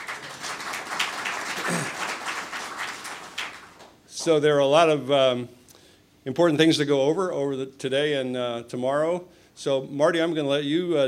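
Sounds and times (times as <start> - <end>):
audience applause: 0.0 - 4.0
speech: 4.2 - 5.6, 6.2 - 11.0.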